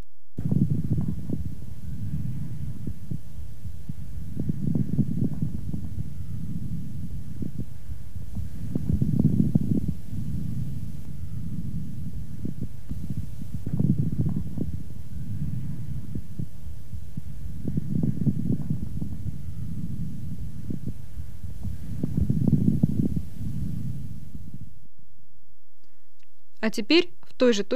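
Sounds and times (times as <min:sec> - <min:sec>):
low rumble: 0:00.1 - 0:26.6
moist medium and coarse bubbling lung crackles through a stethoscope: 0:00.4 - 0:24.7
speech: 0:26.6 - 0:27.7.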